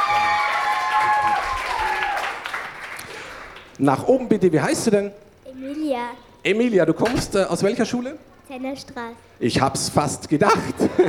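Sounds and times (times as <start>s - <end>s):
applause: 0.0s - 3.8s
speech: 3.8s - 11.0s
laughter: 10.4s - 11.0s.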